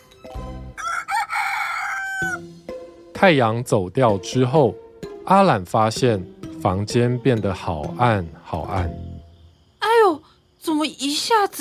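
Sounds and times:
rooster crowing: 0.7s - 2.4s
speech: 3.2s - 9.1s, 10.8s - 11.5s.

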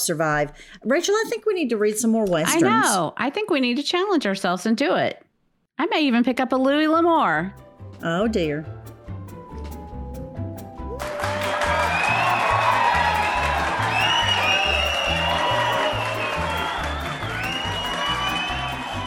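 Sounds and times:
speech: 0.0s - 8.8s
fans cheering and applauding: 10.9s - 19.0s.

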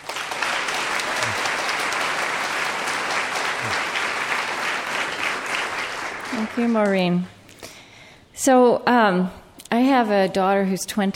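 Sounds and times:
audience applause welcoming speakers at a Chautauqua interfaith lecture: 0.0s - 7.2s
speech: 6.6s - 7.4s, 8.4s - 11.1s.

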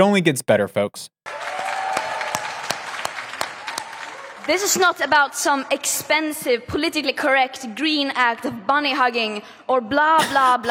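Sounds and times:
speech: 0.0s - 1.6s, 4.5s - 10.6s
audience applause: 1.3s - 4.7s.

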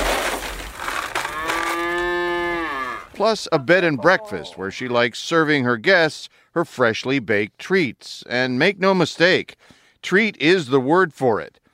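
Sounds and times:
cow mooing on a farm: 1.2s - 3.2s
speech: 3.2s - 11.6s.

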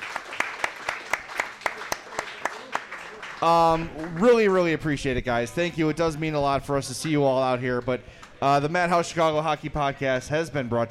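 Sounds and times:
live audience applause: 0.0s - 4.8s
crowd noise: 0.0s - 10.8s
speech: 3.4s - 10.8s.

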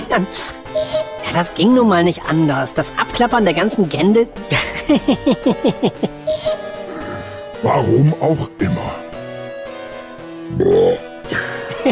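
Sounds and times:
speech: 0.1s - 6.5s, 7.6s - 9.0s, 10.6s - 11.9s
laughter: 4.5s - 6.3s, 11.3s - 11.9s
burp: 6.3s - 7.4s, 10.5s - 11.1s.

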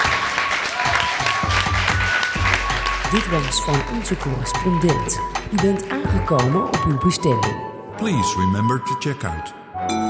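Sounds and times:
audience applause: 0.0s - 4.4s
speech: 3.1s - 10.0s.

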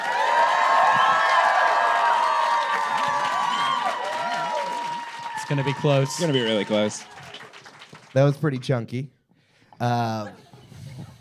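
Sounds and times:
audience excited shouts and whoops: 0.0s - 7.3s
audience applause: 0.0s - 8.6s
speech: 5.5s - 7.2s, 8.2s - 9.2s, 9.8s - 10.5s.

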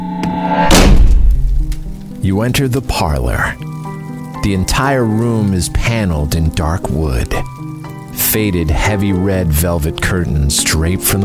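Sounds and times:
heavy door slamming shut: 0.6s - 1.8s
speech: 2.3s - 3.7s, 4.4s - 7.5s, 8.2s - 11.2s.

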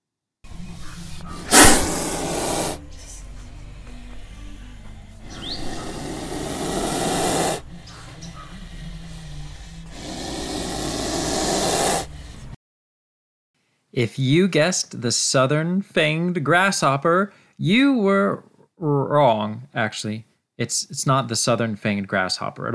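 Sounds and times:
spitting cobra hissing: 0.5s - 12.6s
speech: 14.0s - 22.7s.

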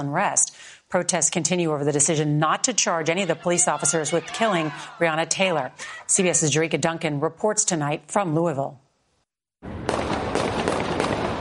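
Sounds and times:
speech: 0.0s - 8.8s
laughter: 3.0s - 6.1s
gunfire erupting in downtown Louisville: 9.7s - 11.3s.

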